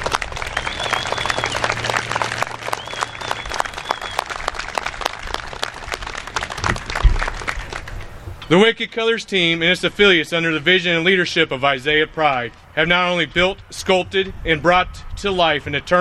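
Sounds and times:
audience round of applause: 0.0 - 8.0
speech: 8.5 - 15.9.

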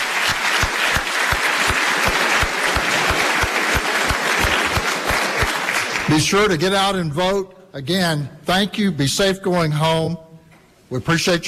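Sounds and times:
audience applause: 0.0 - 6.4
speech: 6.1 - 10.3, 10.9 - 11.4.

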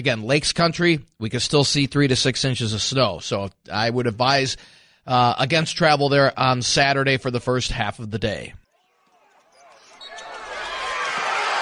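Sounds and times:
speech: 0.0 - 8.6
basketball crowd roar at the Fargo Dome: 8.7 - 11.5.

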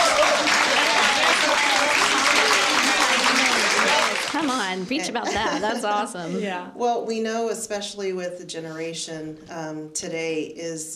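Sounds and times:
applause sound effect: 0.0 - 5.0
laughter: 0.0 - 6.5
speech: 4.7 - 10.9.

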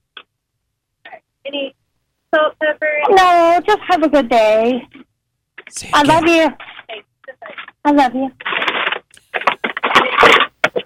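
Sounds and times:
speech: 1.5 - 1.8, 2.6 - 5.0, 5.7 - 6.7, 7.8 - 8.4
paper rustling and crinkling: 8.4 - 10.8.

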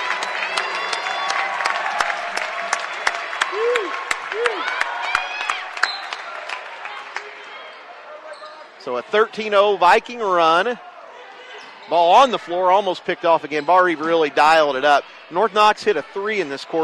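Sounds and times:
applause: 0.0 - 7.6
speech: 8.9 - 10.9, 11.9 - 16.8.

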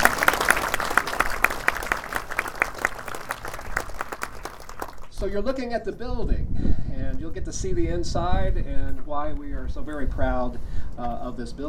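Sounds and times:
audience applause: 0.0 - 5.2
speech: 5.2 - 11.6.

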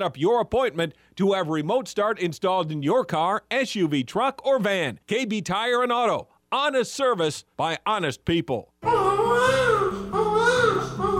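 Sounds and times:
speech: 0.0 - 9.6
baby crying: 8.8 - 11.1.

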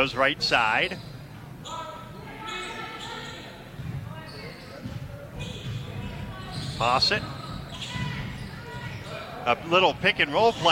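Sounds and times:
speech: 0.0 - 1.8, 6.8 - 7.3, 9.5 - 10.7
basketball dribbled with the right hand during a game: 3.7 - 4.1, 4.8 - 9.1.

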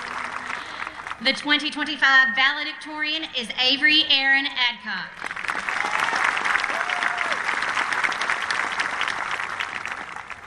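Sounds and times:
crowd applauding: 0.0 - 1.3, 5.2 - 10.4
speech: 1.2 - 5.3.

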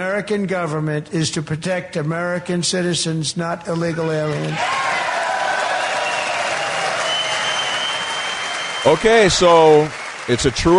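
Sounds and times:
speech: 0.0 - 4.9, 8.8 - 10.7
recorded crowd applause: 4.3 - 10.7.

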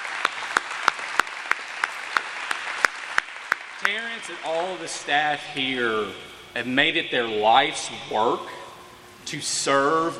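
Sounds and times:
loud round of applause: 0.0 - 4.4
speech: 3.9 - 8.6, 9.3 - 10.1.

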